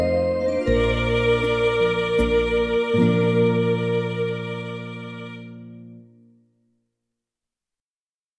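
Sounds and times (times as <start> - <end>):
Christmas carol: 0.0 - 6.1.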